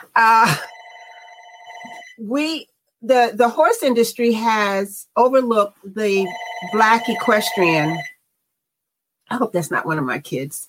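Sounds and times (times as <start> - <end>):
speech: 0.2 - 0.7, 2.2 - 8.1, 9.3 - 10.6
landline house phone ringing: 0.4 - 2.2, 6.2 - 8.1.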